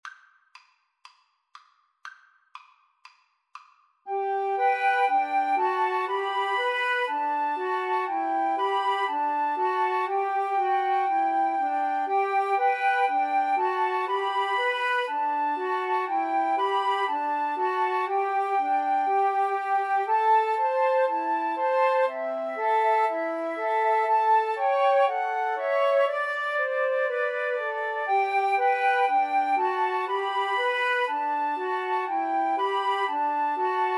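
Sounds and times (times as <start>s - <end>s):
flute trio playing: 4.1s - 33.9s.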